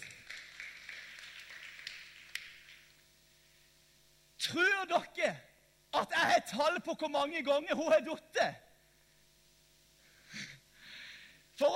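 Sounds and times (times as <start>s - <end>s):
crowd applause: 0.0s - 3.0s
speech: 4.5s - 8.6s.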